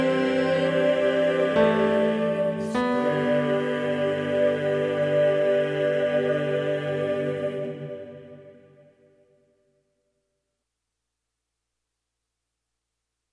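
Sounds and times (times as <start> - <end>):
tenor singing: 0.0 - 8.5.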